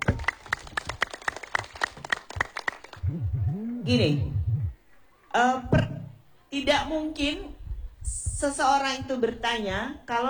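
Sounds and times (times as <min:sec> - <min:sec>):
applause: 0:00.0 - 0:03.0
speech: 0:03.9 - 0:04.4, 0:05.3 - 0:05.9, 0:06.5 - 0:07.6, 0:08.4 - 0:10.2.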